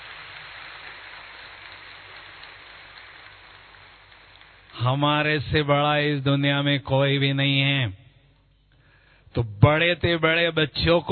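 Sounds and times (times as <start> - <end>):
loud applause: 0.0 - 5.3
speech: 4.8 - 8.0, 9.3 - 11.0.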